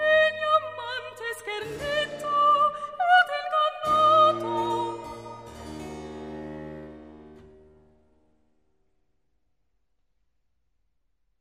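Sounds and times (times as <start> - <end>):
soprano solo singing a cantata: 0.0 - 5.6.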